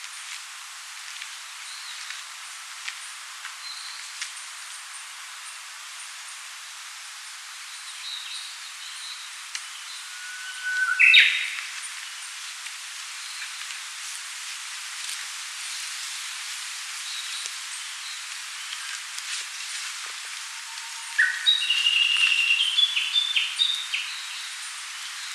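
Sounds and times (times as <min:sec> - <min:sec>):
Cettia diphone singing: 0:07.8 - 0:11.7, 0:20.6 - 0:24.6.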